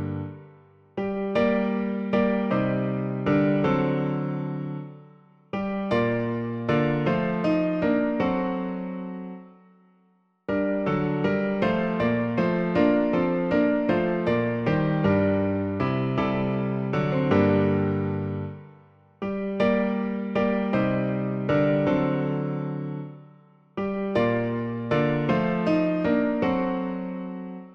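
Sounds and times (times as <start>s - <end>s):
piano version of a piece: 0.0s - 27.7s.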